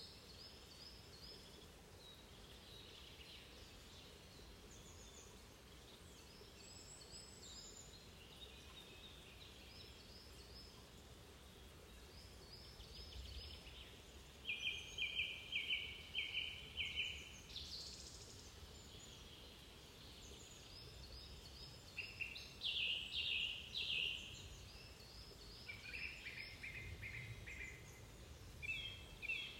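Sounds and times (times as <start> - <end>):
forest nature sounds: 0.0 - 29.5.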